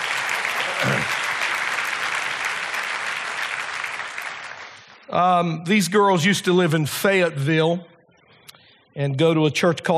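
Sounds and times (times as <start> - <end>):
crowd clapping: 0.0 - 5.1
speech: 5.1 - 7.9, 9.0 - 9.9.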